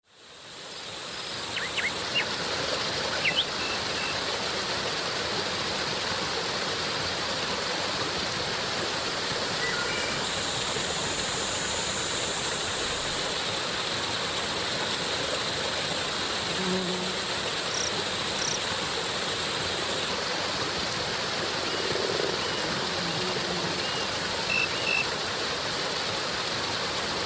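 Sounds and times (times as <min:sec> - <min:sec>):
waterfall: 0:00.0 - 0:27.2.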